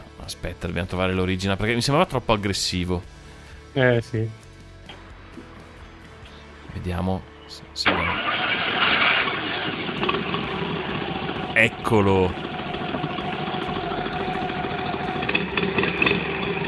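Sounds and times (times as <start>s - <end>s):
speech: 0.3s - 4.4s, 6.8s - 8.2s, 11.6s - 12.5s
vintage small car engine idling: 7.8s - 16.6s.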